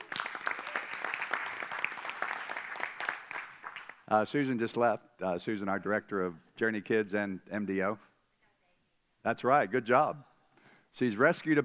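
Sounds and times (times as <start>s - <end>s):
crowd clapping: 0.0s - 4.1s
speech: 4.1s - 8.1s, 9.2s - 10.3s, 10.9s - 11.6s.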